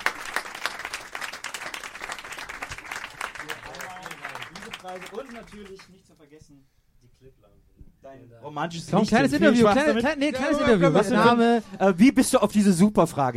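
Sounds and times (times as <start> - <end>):
audience applause: 0.0 - 6.0
speech: 4.9 - 13.3.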